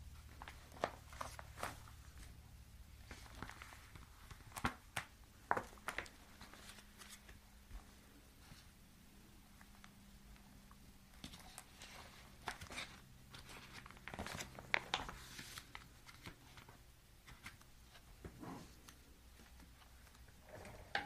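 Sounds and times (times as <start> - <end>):
faint low hum: 0.0 - 21.0
cash being sorted and counted: 0.1 - 2.4, 3.0 - 7.9, 11.0 - 18.2.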